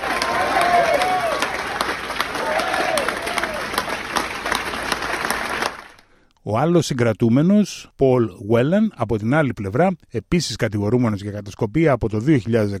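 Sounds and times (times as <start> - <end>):
excited voices: 0.0 - 3.8
newsroom staff applauding: 0.0 - 6.1
speech: 6.5 - 12.7.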